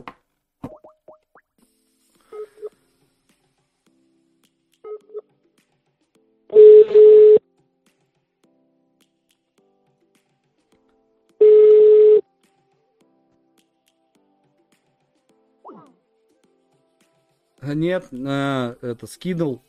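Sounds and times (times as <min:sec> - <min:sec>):
long steady phone tones: 0:06.6 - 0:07.4, 0:11.4 - 0:12.2
telephone dialing keypad tones and clicks: 0:11.4 - 0:12.2
speech: 0:17.7 - 0:19.6.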